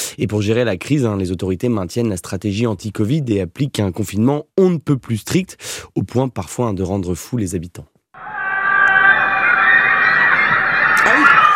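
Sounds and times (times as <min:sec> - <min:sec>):
speech: 0:00.2 - 0:07.9
residents screaming from their windows in Shanghai: 0:08.2 - 0:11.5.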